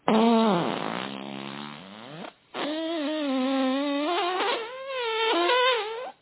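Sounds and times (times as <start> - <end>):
farts: 0.0 - 6.1.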